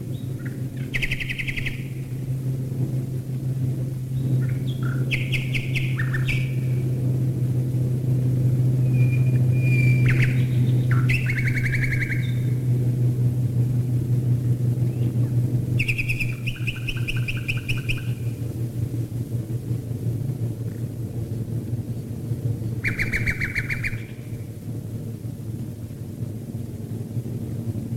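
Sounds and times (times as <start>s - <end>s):
loud engine drone: 0.0s - 27.9s
common nightingale singing: 0.1s - 2.2s, 4.2s - 6.8s, 8.8s - 12.6s, 15.8s - 18.4s, 22.6s - 24.4s.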